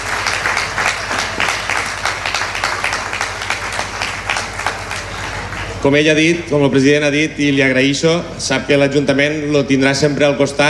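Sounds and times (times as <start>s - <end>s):
audience applause: 0.0s - 5.8s
speech: 5.8s - 10.6s.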